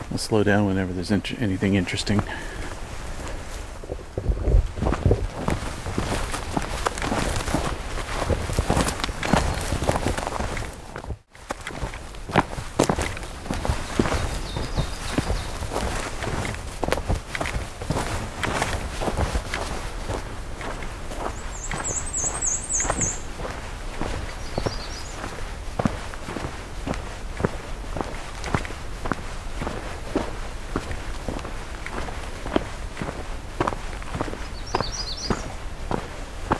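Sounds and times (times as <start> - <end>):
footsteps walking fast on a hiking trail: 0.0 - 36.5
speech: 0.2 - 2.6
soft wind rumble: 0.9 - 36.5
rustling: 2.1 - 34.5
high bird chirp: 13.4 - 16.5, 20.6 - 25.5, 34.1 - 36.0.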